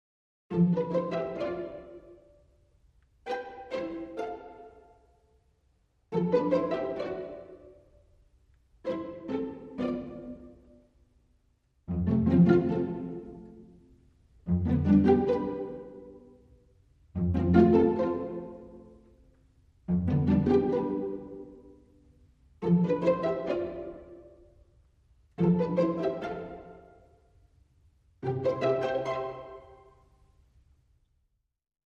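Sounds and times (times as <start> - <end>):
strings: 0.5 - 30.6.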